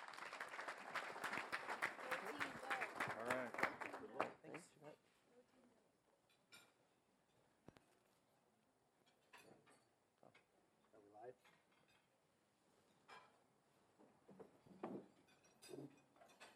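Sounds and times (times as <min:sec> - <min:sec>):
audience applause: 0:00.0 - 0:04.7.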